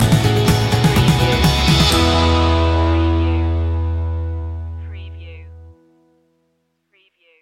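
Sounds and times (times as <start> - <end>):
music stinger: 0.0 - 4.9.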